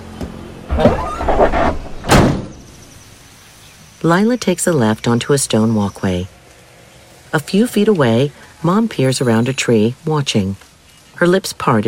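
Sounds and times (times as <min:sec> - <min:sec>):
battered rear door of a van slamming: 0:00.6 - 0:02.7
metal van ramp sliding into place: 0:00.7 - 0:02.6
speech: 0:04.0 - 0:06.4, 0:07.3 - 0:11.8.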